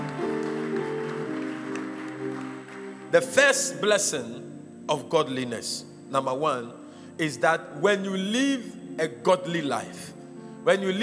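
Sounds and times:
church congregation clapping: 0.0s - 4.2s
speech: 3.1s - 11.0s.

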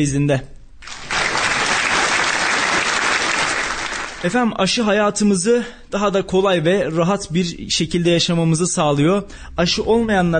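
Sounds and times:
speech: 0.0s - 0.6s, 4.2s - 10.3s
applause: 0.8s - 4.4s.

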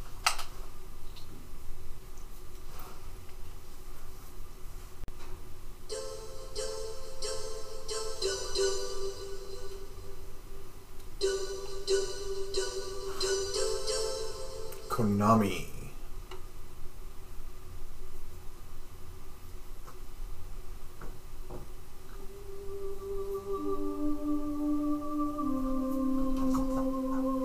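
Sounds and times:
PlayStation 1 startup sound: 5.9s - 10.6s, 11.2s - 15.4s, 22.2s - 27.4s
speech: 15.0s - 15.7s.

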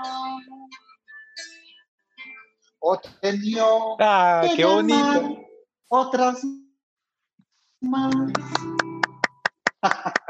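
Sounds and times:
speech: 2.8s - 6.6s, 7.8s - 8.6s, 9.8s - 10.2s
laughter: 4.4s - 5.4s, 9.7s - 10.2s
hand clapping: 8.0s - 10.2s.

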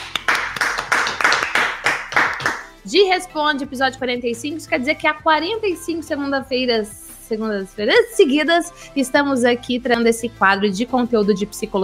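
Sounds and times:
audience clapping in a steady rhythm: 0.0s - 2.7s
speech: 2.9s - 11.8s.

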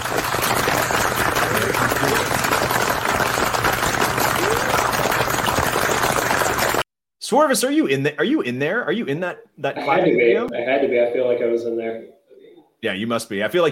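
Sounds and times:
audience applause: 0.0s - 6.8s
speech: 7.3s - 12.2s, 12.8s - 13.7s.

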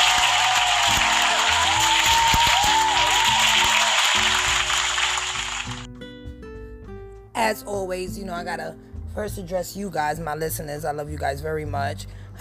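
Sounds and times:
applause: 0.0s - 5.9s
speech: 7.5s - 12.2s.

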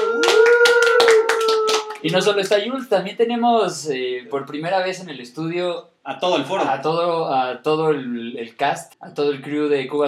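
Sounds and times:
clapping: 0.0s - 2.2s
speech: 2.0s - 10.0s.

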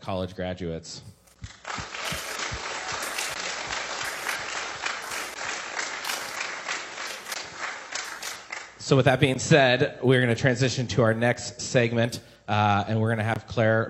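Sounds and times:
speech: 0.0s - 1.6s, 8.8s - 13.8s
crowd applauding: 1.4s - 8.8s.

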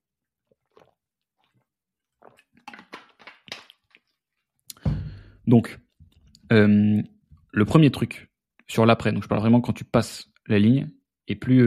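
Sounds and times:
person taking a small sip of drink: 0.4s - 5.3s
speech: 5.5s - 5.8s, 6.5s - 11.6s.

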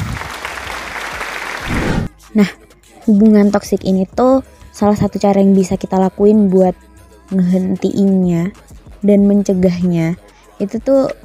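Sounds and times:
applause from a group of listeners: 0.0s - 2.1s
speech: 2.4s - 11.2s.

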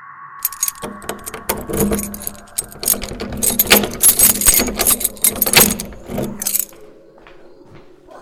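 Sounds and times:
door being locked: 0.4s - 6.8s.

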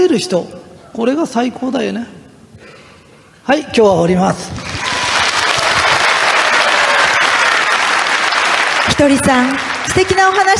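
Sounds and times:
speech: 0.0s - 2.2s, 3.4s - 4.7s, 9.0s - 10.5s
audience applause: 4.6s - 10.5s.

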